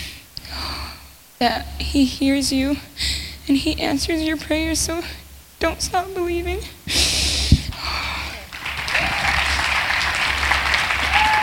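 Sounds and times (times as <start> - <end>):
speech: 1.4 - 6.8
round of applause: 8.3 - 11.4.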